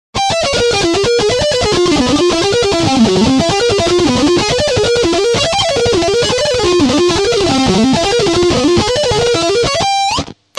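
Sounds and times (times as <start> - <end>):
guitar: 0.2 - 10.5.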